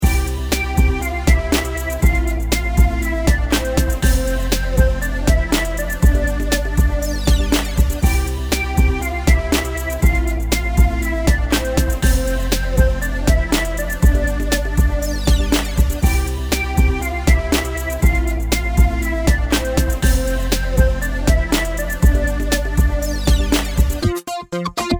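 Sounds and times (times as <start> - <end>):
instrumental music: 0.0 - 24.9.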